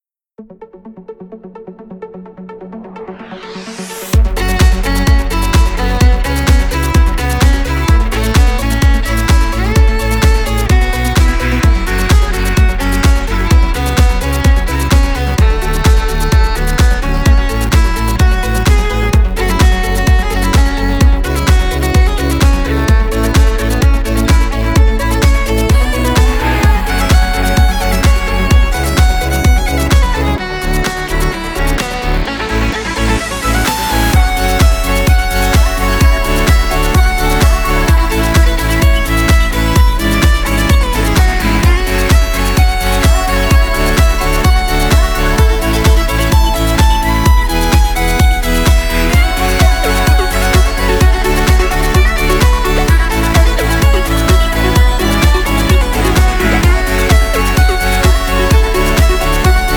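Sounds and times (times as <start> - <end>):
violin: 3.0 - 59.7.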